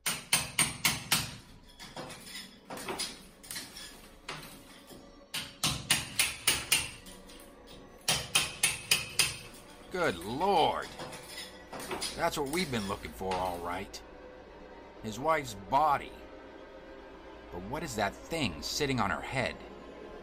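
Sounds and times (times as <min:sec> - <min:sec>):
crowbar knocking down a wall: 0:00.0 - 0:01.4, 0:05.3 - 0:07.0, 0:08.1 - 0:09.5
speech: 0:10.0 - 0:11.0, 0:12.0 - 0:14.1, 0:15.0 - 0:16.2, 0:17.6 - 0:19.7.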